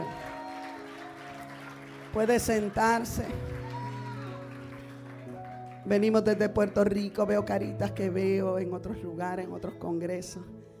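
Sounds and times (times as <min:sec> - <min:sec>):
audience applause: 0:00.0 - 0:06.4
speech: 0:02.1 - 0:03.5, 0:05.9 - 0:10.6.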